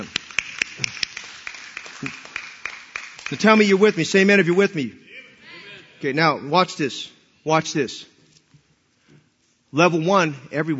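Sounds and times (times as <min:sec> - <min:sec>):
scattered applause from a crowd: 0:00.0 - 0:04.7
speech: 0:02.0 - 0:02.2, 0:03.3 - 0:05.0, 0:06.0 - 0:08.1, 0:09.7 - 0:10.7.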